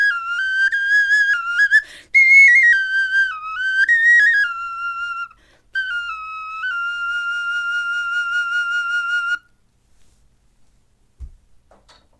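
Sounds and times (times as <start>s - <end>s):
bone flute melody: 0.0s - 9.5s.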